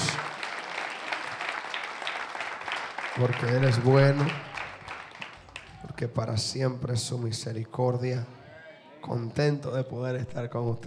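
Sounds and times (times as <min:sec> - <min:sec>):
audience applauding: 0:00.0 - 0:06.0
speech: 0:03.2 - 0:04.5, 0:06.0 - 0:08.4, 0:09.0 - 0:10.8.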